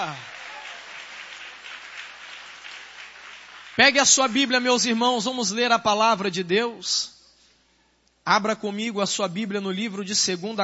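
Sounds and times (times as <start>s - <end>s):
audience applause: 0.0s - 4.3s
speech: 3.8s - 7.2s, 8.2s - 10.6s.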